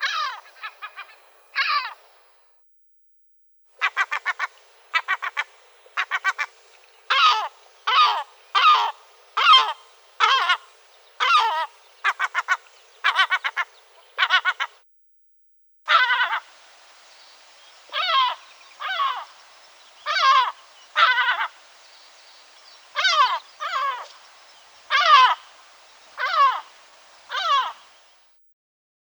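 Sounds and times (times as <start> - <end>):
eastern lesser black-backed gull calling: 0.0 - 2.3, 3.8 - 14.8, 15.9 - 28.3.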